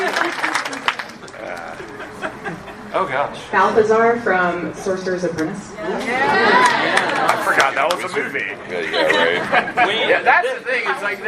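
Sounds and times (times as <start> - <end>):
audience round of applause: 0.0 - 2.0, 6.3 - 8.2
speech: 3.0 - 11.2.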